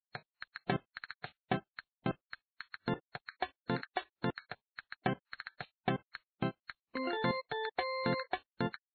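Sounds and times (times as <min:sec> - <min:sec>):
jukebox music: 0:02.8 - 0:08.8.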